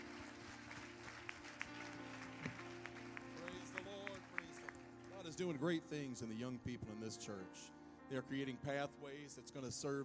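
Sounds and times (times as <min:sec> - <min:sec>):
audience hand clapping: 0:00.0 - 0:05.5
speech: 0:05.3 - 0:10.0.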